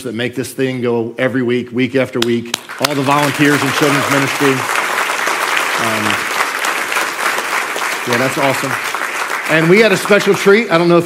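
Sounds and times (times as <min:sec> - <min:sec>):
speech: 0:00.0 - 0:04.8, 0:05.8 - 0:06.3, 0:08.0 - 0:08.9, 0:09.5 - 0:11.0
audience applause: 0:02.6 - 0:10.7.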